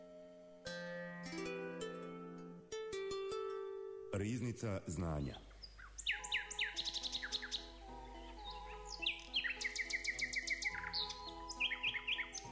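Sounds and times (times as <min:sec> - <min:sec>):
nightingale song: 0:00.0 - 0:12.4
speech: 0:04.2 - 0:05.5.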